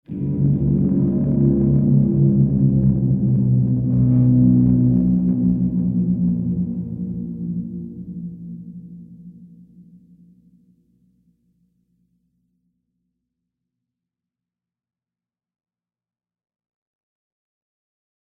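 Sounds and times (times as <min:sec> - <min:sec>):
scary guitar mood music: 0:00.1 - 0:08.9.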